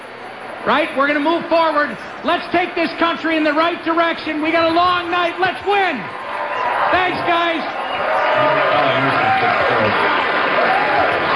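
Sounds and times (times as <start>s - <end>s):
speech: 0.6s - 6.2s, 6.9s - 8.9s
large happy crowd cheering and applauding: 5.9s - 11.3s.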